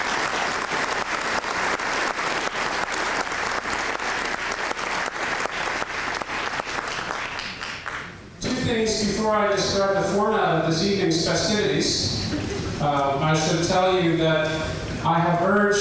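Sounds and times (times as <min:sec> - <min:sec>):
audience applause for speakers: 0:00.0 - 0:08.2
speech: 0:08.8 - 0:12.2, 0:12.8 - 0:15.7.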